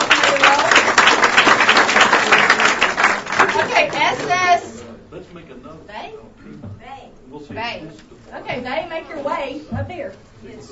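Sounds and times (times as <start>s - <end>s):
audience applause: 0.0s - 4.6s
speech: 5.2s - 10.7s.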